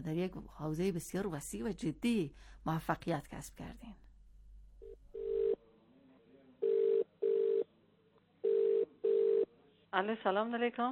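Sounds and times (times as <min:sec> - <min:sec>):
speech: 0:00.0 - 0:04.0, 0:10.0 - 0:10.9
ringback tone of an outgoing call placed by a radio host: 0:06.6 - 0:07.6, 0:08.5 - 0:09.5.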